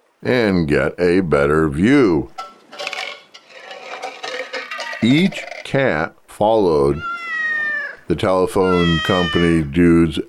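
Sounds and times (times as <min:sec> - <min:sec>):
speech: 0:00.2 - 0:02.4, 0:05.0 - 0:07.1, 0:08.1 - 0:10.2
empty tin cans clattering: 0:02.3 - 0:05.8.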